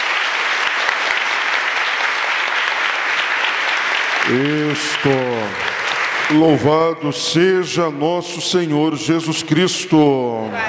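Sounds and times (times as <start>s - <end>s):
audience applauding: 0.0s - 7.0s
speech: 4.3s - 10.6s.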